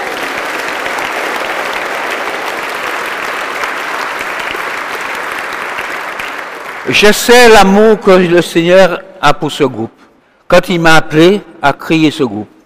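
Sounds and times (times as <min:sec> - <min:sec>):
audience applause: 0:00.0 - 0:07.6
speech: 0:06.9 - 0:12.5.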